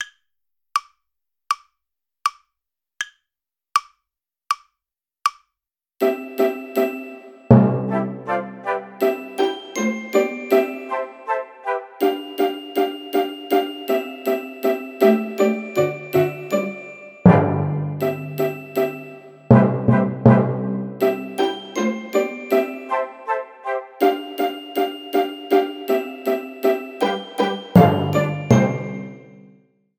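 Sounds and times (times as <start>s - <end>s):
slow play-along backing music: 6.1s - 29.2s.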